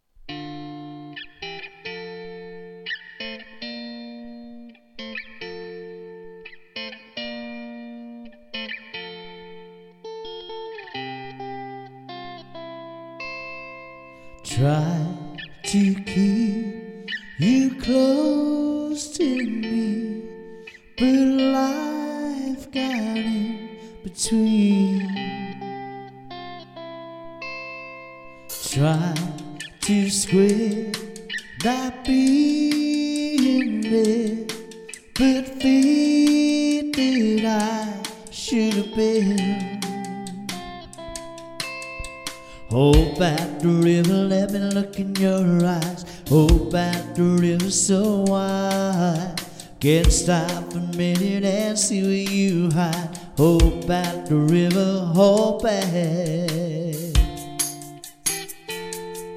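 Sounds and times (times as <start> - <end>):
vocals: 14.2 - 26.7, 28.4 - 59.3.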